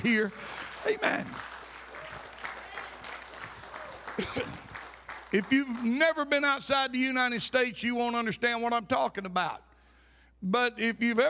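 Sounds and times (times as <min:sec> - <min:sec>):
speech: 0:00.0 - 0:01.6, 0:04.2 - 0:04.7, 0:05.3 - 0:09.7, 0:10.4 - 0:11.2
audience clapping hands: 0:00.0 - 0:06.5.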